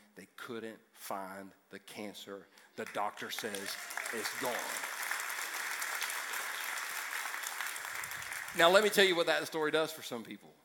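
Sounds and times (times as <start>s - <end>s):
speech: 0.5s - 4.9s, 8.6s - 10.6s
audience clapping: 2.8s - 9.6s.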